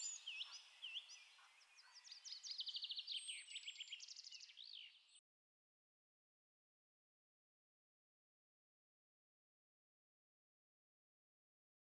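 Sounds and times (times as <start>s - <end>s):
Eurasian blackcap warbling song: 0.0s - 5.0s.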